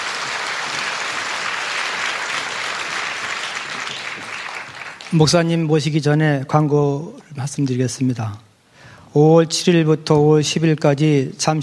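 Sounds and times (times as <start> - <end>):
large audience applause for a choir: 0.0 - 5.4
speech: 5.1 - 8.5, 9.2 - 11.6.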